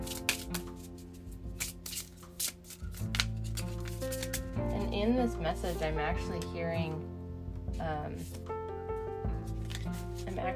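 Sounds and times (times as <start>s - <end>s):
oracle cards rustling and sliding as a card is drawn from a deck: 0.0s - 4.6s, 9.4s - 10.4s
speech: 5.0s - 7.2s, 7.8s - 8.6s, 10.4s - 10.5s.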